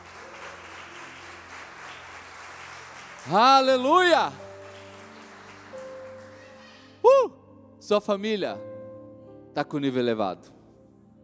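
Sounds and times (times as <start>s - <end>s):
audience applauding: 0.0s - 7.0s
speech: 3.2s - 4.4s, 7.9s - 8.7s, 9.6s - 10.6s.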